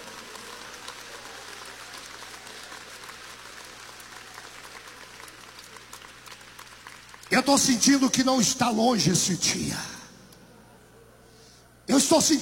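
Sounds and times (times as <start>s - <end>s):
audience clapping: 0.0s - 9.6s
speech: 7.4s - 9.9s, 12.1s - 12.4s.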